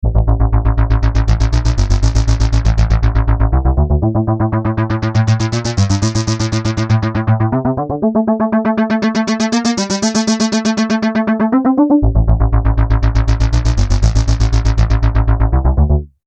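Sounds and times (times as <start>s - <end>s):
synth: 0.0s - 16.0s.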